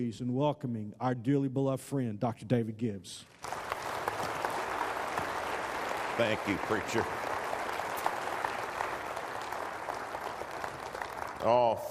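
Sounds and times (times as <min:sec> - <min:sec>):
speech: 0:00.0 - 0:03.6, 0:06.2 - 0:07.2, 0:11.4 - 0:11.8
church audience applauding: 0:03.3 - 0:11.8.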